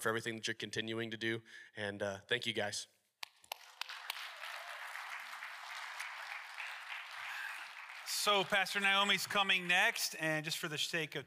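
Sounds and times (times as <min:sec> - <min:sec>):
speech: 0:00.0 - 0:03.0, 0:08.2 - 0:11.2
audience applause: 0:03.5 - 0:09.9.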